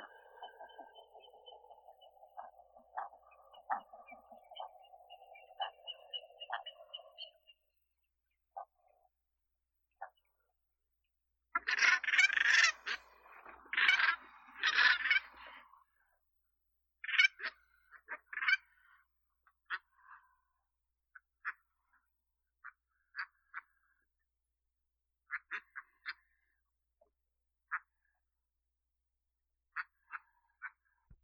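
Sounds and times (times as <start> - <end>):
white goose Anser caerulescens: 0.0 - 7.6, 11.6 - 15.9, 17.0 - 20.6, 21.2 - 24.1, 25.3 - 26.6, 27.7 - 28.3, 29.7 - 31.0.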